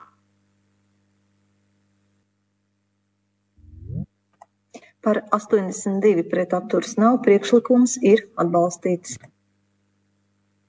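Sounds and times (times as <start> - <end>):
low electrical hum: 3.6 - 4.1
speech: 5.0 - 9.3.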